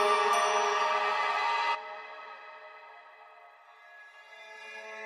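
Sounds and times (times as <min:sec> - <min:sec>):
atmospheric sound: 0:00.0 - 0:04.0.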